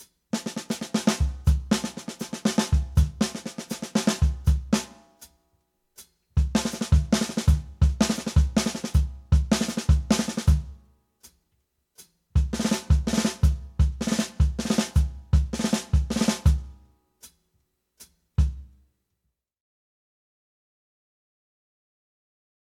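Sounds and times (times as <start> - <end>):
bop drumming in one bar phrases: 0.0 - 5.2, 6.4 - 10.8, 12.4 - 16.8, 18.4 - 18.7.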